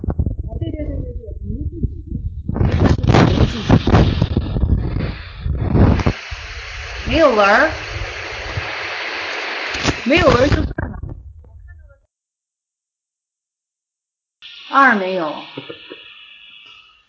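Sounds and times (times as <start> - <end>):
electric fan running at high speed: 0.0 - 10.8
speech: 7.1 - 7.8, 10.1 - 10.7, 14.8 - 16.0.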